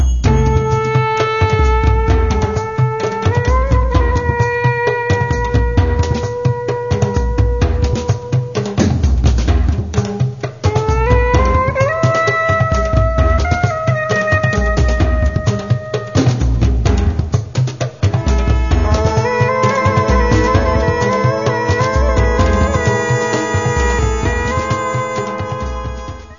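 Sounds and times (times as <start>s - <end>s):
orchestra: 0.1s - 26.3s.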